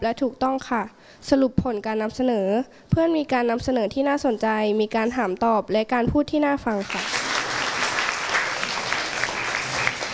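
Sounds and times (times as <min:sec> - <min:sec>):
speech: 0:00.0 - 0:07.2
audience applause: 0:06.8 - 0:10.1.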